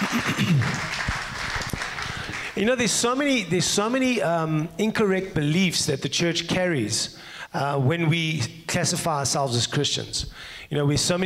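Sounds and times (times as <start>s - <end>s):
round of applause: 0.0s - 2.6s
speech: 0.4s - 0.9s, 2.6s - 11.2s.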